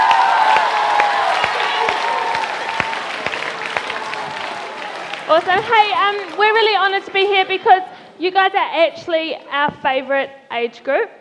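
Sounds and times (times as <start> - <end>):
audience applause: 0.0 - 7.2
speech: 5.3 - 11.1.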